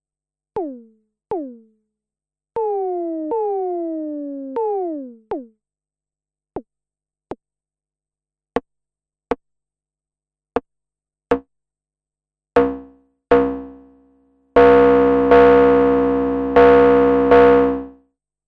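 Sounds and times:
synthesizer VCO tones decaying: 0.6s - 1.8s, 2.6s - 5.5s, 14.6s - 17.9s.

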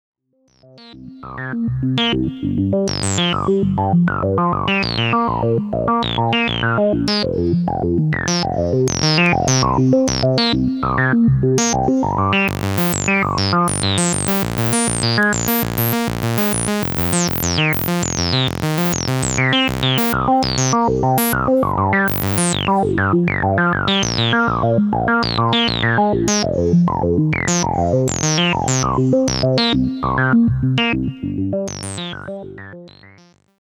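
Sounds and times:
filtered electronic sound: 2.4s - 33.4s.

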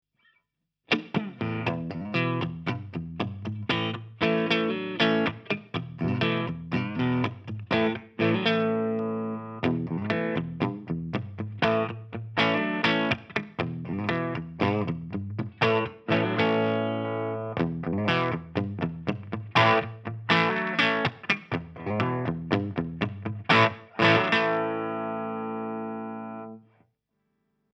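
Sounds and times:
Schecter KM-6 MK-III guitar clean tone: 0.9s - 26.7s.

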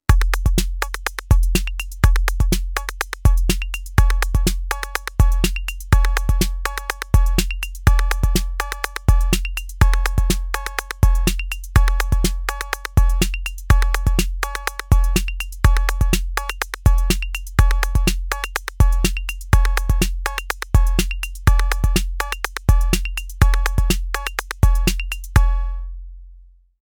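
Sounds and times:
percussion: 0.0s - 26.0s.

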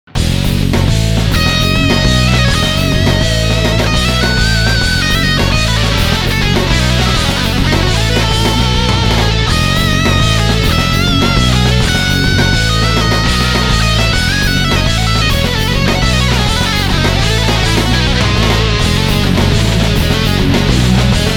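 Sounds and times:
power metal music: 0.1s - 21.3s.

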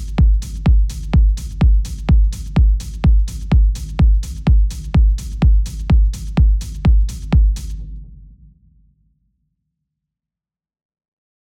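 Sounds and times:
techno kick rumble: 0.0s - 8.5s.

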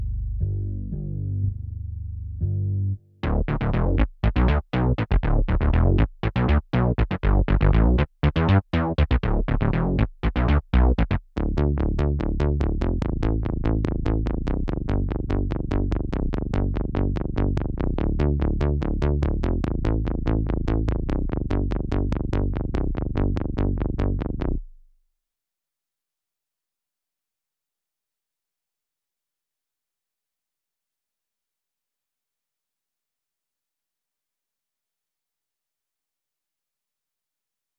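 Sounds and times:
bass: 0.0s - 24.9s.

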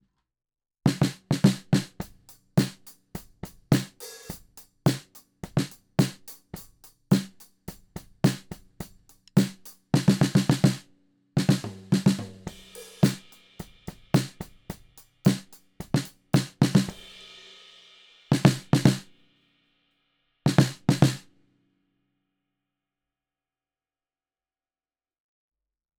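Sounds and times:
snare drum recorded with DPA 4099: 0.9s - 17.5s, 18.2s - 19.1s, 20.5s - 21.3s.

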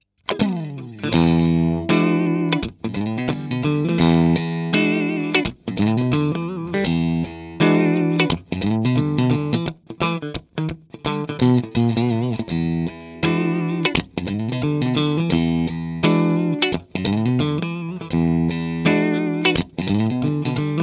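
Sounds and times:
clean electric guitar on neck plus bridge single coil pickups: 0.3s - 20.8s.

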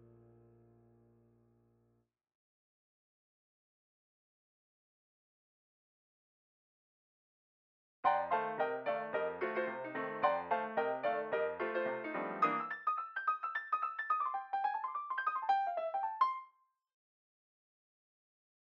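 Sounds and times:
piano: 0.0s - 1.5s, 8.0s - 16.5s.

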